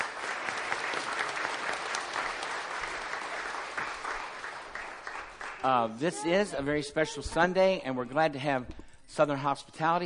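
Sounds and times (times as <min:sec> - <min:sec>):
audience applause: 0:00.0 - 0:06.3
speech: 0:05.6 - 0:10.0.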